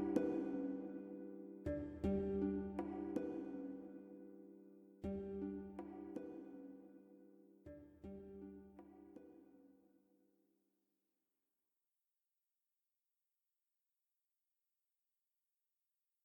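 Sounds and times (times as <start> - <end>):
ambient music: 0.0 - 6.8.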